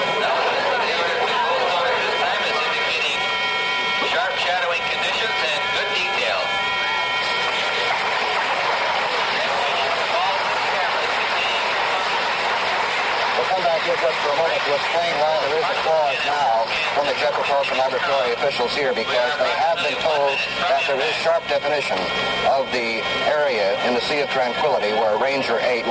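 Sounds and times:
constant hum of spacecraft telemetry signal: 0.0 - 25.8
speech: 14.7 - 25.8.

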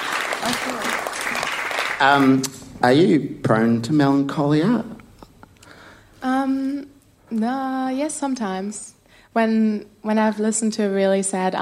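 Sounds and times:
audience applause: 0.0 - 2.4
speech: 0.4 - 1.1, 2.0 - 5.0, 6.2 - 11.6.

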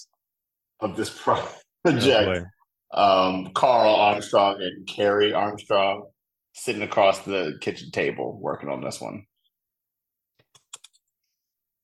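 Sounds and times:
speech: 0.8 - 9.3
computer keyboard clicks: 10.4 - 11.1.

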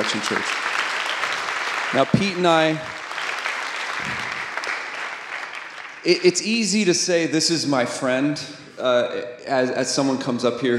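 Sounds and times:
speech: 0.0 - 0.8, 1.9 - 3.0, 4.0 - 4.3, 6.0 - 10.7
audience applause greeting a guest pastor at an Advent church service: 0.0 - 6.5.

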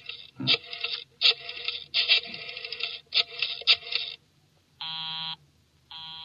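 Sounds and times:
harsh crackly rattling bursts: 0.0 - 4.2
telephone busy signal: 6.0 - 6.2.

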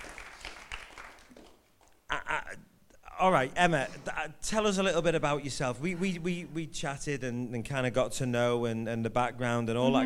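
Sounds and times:
audience applause: 0.0 - 1.6
speech: 3.2 - 10.0
person speaking loudly: 9.8 - 10.0.

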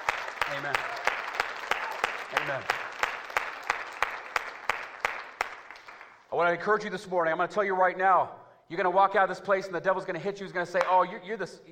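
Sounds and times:
audience clapping: 0.0 - 6.3
speech: 0.5 - 1.0, 2.3 - 2.8, 6.3 - 11.6.

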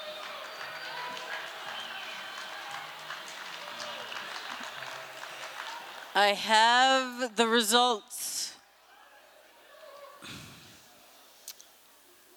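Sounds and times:
audience applause: 0.0 - 7.0
speech: 6.2 - 8.3.

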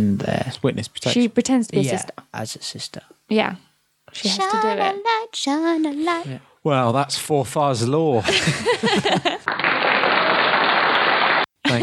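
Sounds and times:
speech: 0.0 - 10.0
laughter: 8.2 - 9.5, 11.6 - 11.8
scattered clapping from a small audience: 9.5 - 11.5.

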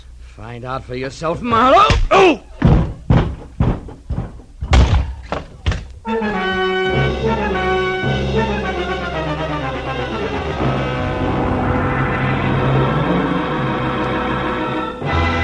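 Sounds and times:
speech: 0.4 - 2.5
cellar door being wrenched open: 1.8 - 5.9
orchestral music: 6.0 - 15.4.

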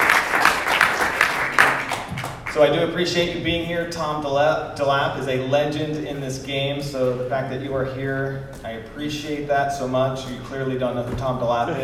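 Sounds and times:
audience round of applause: 0.0 - 2.6
speech: 2.6 - 11.8.

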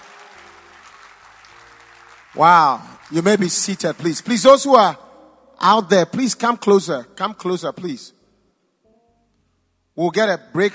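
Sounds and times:
loud hand clapping: 0.0 - 4.8
speech: 2.3 - 8.2, 10.0 - 10.7.

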